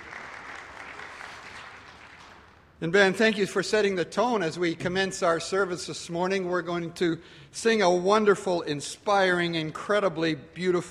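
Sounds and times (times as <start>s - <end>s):
audience applause for a band after a march at a morning church service: 0.0s - 2.5s
speech: 2.8s - 10.9s.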